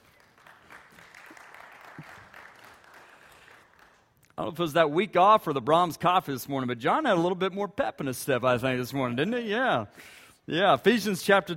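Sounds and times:
audience round of applause: 0:00.0 - 0:04.1
speech: 0:04.4 - 0:11.5.

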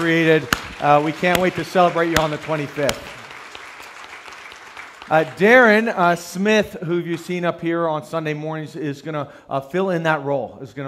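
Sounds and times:
speech: 0:00.0 - 0:03.2, 0:05.1 - 0:10.8
audience applause: 0:00.0 - 0:05.9.

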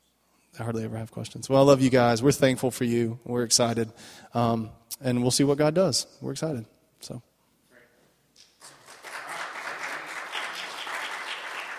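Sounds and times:
speech: 0:00.6 - 0:07.3
audience clapping: 0:08.4 - 0:11.7.

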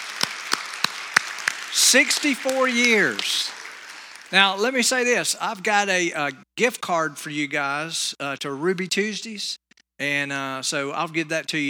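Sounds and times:
audience applause: 0:00.0 - 0:05.3
speech: 0:01.8 - 0:03.6, 0:04.3 - 0:11.6.

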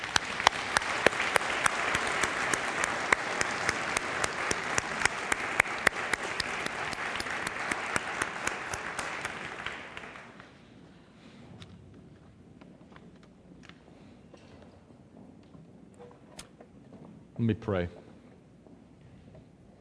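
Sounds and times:
audience applauding: 0:00.0 - 0:10.6
speech: 0:17.4 - 0:18.0.

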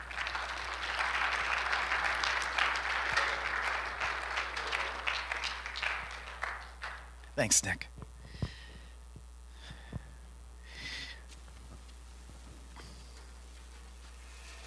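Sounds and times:
audience applause welcoming speakers onto a stage: 0:00.0 - 0:07.3
speech: 0:07.4 - 0:08.0.

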